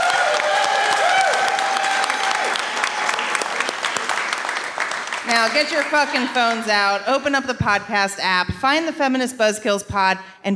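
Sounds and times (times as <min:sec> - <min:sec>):
audience applause: 0:00.0 - 0:07.0
speech: 0:05.4 - 0:10.5.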